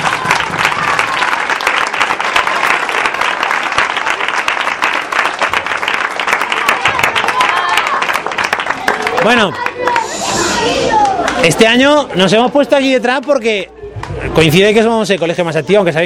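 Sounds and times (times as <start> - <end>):
audience applause: 0.0 - 11.6
speech: 9.2 - 9.7, 10.3 - 16.0.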